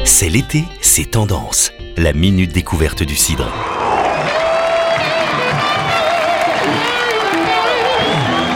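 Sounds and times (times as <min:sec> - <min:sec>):
speech: 0:00.1 - 0:03.9
festival crowd shouting and whooping at a summer music stage: 0:03.5 - 0:08.5.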